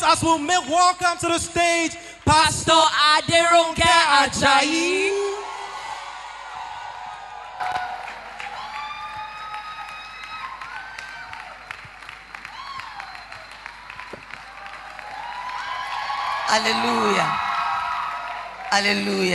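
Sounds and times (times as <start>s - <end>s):
speech: 0.0s - 5.4s, 16.5s - 17.4s, 18.7s - 19.3s
audience applause: 5.5s - 19.3s.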